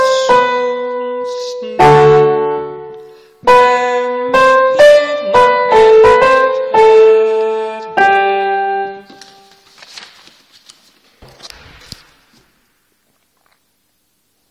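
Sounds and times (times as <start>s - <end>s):
soprano singing: 0.0s - 9.4s.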